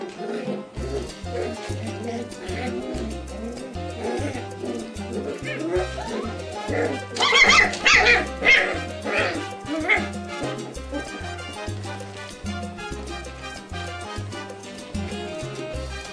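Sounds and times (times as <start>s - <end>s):
puppies giving sharp high yips and squeals in play: 0.0s - 13.2s, 15.0s - 15.8s.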